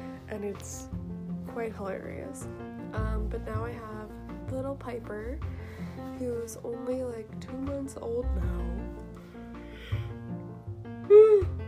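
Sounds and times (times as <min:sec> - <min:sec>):
speech: 0:00.4 - 0:09.0, 0:11.1 - 0:11.6
person yawning: 0:11.1 - 0:11.6.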